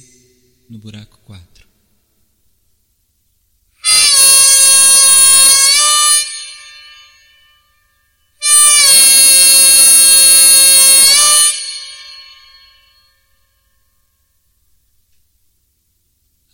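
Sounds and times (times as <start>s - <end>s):
gaita de boca bagpipe bends: 3.8s - 13.5s.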